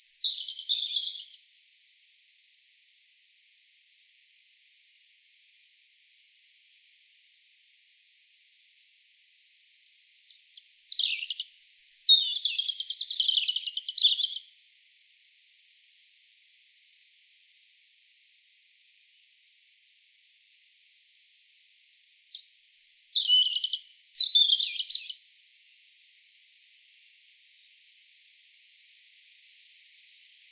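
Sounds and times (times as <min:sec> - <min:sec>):
European robin singing: 0:00.0 - 0:01.4, 0:10.3 - 0:14.5, 0:22.0 - 0:25.2.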